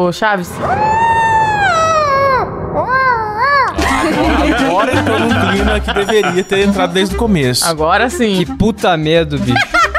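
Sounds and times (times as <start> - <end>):
speech: 0.0 - 1.1, 4.2 - 9.8
voice imitating dog howl: 0.6 - 3.8
laughter: 3.8 - 7.4, 9.4 - 9.9.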